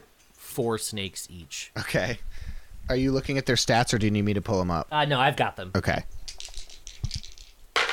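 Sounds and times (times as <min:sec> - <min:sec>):
speech: 0:00.6 - 0:06.2
two dice rolling on a hard tabletop: 0:06.3 - 0:07.9.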